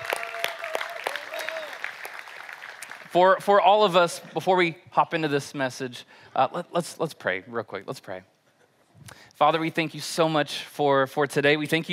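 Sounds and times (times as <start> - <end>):
audience applause: 0.0 - 3.4
speech: 3.1 - 8.3, 9.1 - 11.9.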